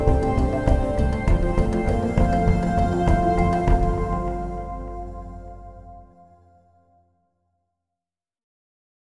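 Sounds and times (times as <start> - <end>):
ambient sounds: 0.0 - 6.8.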